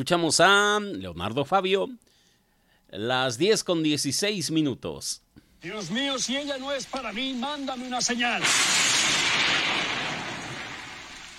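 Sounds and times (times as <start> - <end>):
speech: 0.0 - 2.1, 2.9 - 10.0
thunder clap: 8.3 - 11.3.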